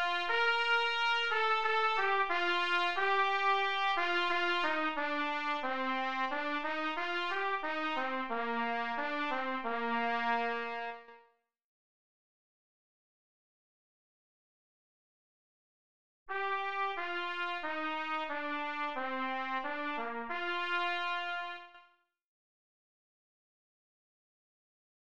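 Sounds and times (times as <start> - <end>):
trumpet playing: 0.0 - 11.2, 16.3 - 21.9.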